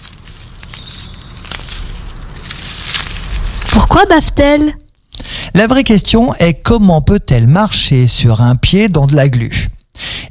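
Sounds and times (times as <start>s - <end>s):
slug eating a leaf: 0.0s - 4.4s
speech: 3.9s - 4.8s, 5.6s - 10.2s.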